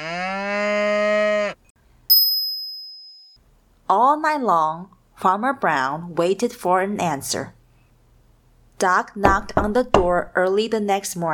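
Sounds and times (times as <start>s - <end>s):
cow mooing: 0.0s - 1.6s
bright bell-like ding: 2.1s - 3.4s
speech: 4.1s - 7.6s, 8.8s - 11.3s.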